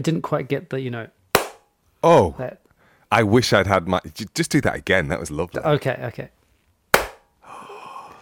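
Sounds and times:
speech: 0.0 - 1.2, 2.0 - 6.4
single sharp hand clap: 1.4 - 1.6.

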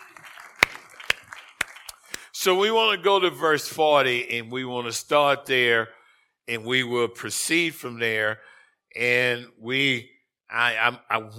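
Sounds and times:
audience clapping hands in unison: 0.0 - 2.4
speech: 2.4 - 11.3.

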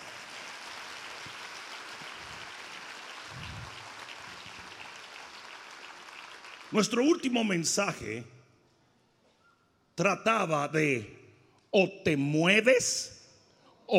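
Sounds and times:
audience applause: 0.0 - 7.4
speech: 6.7 - 8.4, 10.0 - 13.2.

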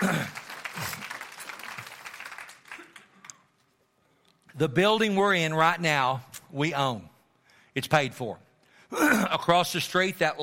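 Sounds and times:
audience clapping: 0.0 - 3.7
speech: 4.6 - 7.1, 7.8 - 10.4.

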